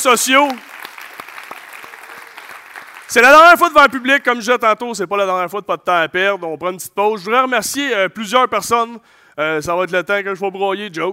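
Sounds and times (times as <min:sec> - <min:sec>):
speech: 0:00.0 - 0:00.7, 0:03.1 - 0:11.1
audience applause: 0:00.0 - 0:03.5.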